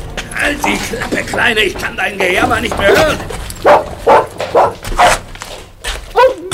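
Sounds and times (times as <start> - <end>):
speech: 0.5 - 3.9
dog barking: 3.6 - 5.3, 6.1 - 6.4.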